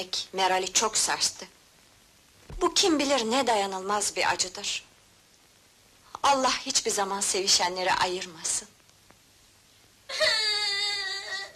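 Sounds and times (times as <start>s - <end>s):
speech: 0.0s - 1.6s, 2.6s - 4.9s, 6.2s - 8.8s, 10.1s - 10.4s
infant crying: 10.1s - 11.5s.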